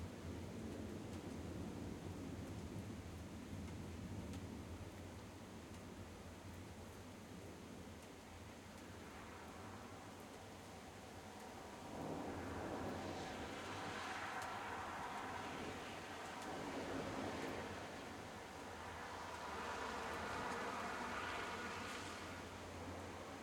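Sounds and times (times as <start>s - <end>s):
light rain: 0.0s - 23.4s
vehicles passing on wet floor: 8.8s - 23.4s.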